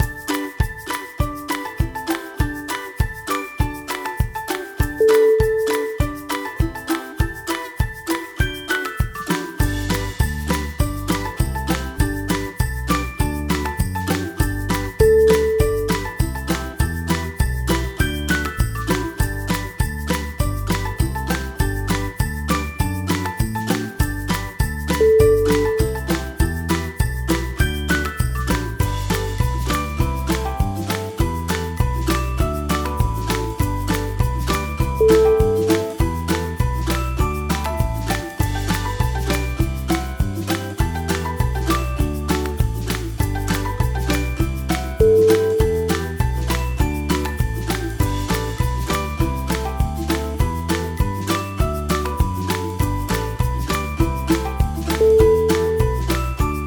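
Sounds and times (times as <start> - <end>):
cheerful background music: 0.0 - 56.6.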